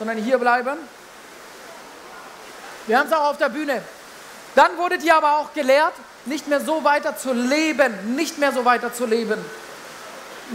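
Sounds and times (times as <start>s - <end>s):
speech: 0.0s - 1.0s, 2.9s - 4.0s, 4.6s - 9.7s
steady dense rain: 0.0s - 10.5s.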